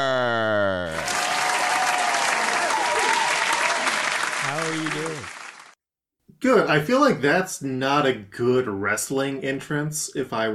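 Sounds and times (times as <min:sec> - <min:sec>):
audience applause at a live show: 0:00.9 - 0:05.8
speech: 0:06.6 - 0:10.5.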